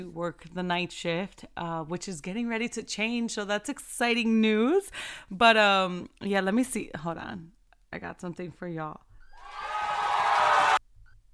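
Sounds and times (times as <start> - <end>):
speech: 0.0 - 9.6
crowd cheering: 9.4 - 10.8.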